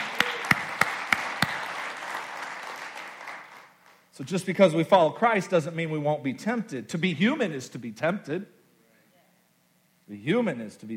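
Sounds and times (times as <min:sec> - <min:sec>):
crowd clapping in unison: 0:00.0 - 0:04.1
scattered applause and murmur: 0:00.0 - 0:04.1
speech: 0:04.2 - 0:08.6, 0:10.1 - 0:10.9.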